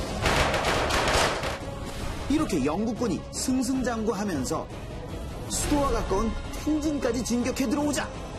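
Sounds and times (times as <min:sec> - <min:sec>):
battle gunfire from cannon and rifles: 0:00.2 - 0:01.6
speech: 0:02.3 - 0:04.9, 0:05.7 - 0:08.2.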